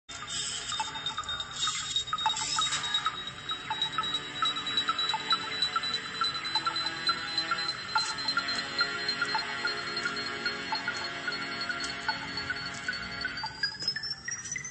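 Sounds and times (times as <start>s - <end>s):
beacon signal: 0.1s - 14.6s.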